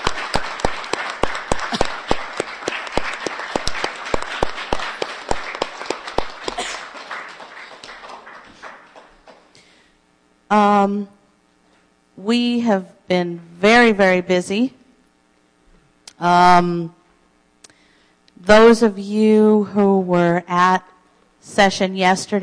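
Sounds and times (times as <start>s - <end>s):
dense crowd applause: 0.0s - 9.7s
speech: 10.5s - 11.2s, 12.2s - 14.8s, 16.2s - 17.0s, 18.4s - 22.4s.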